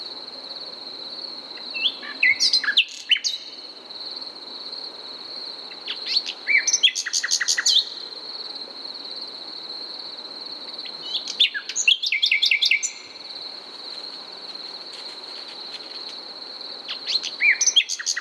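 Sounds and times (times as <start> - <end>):
Common nightingale singing, Luscinia megarhynchos: 1.6 - 3.6, 5.7 - 8.0, 10.8 - 13.4, 16.8 - 18.1.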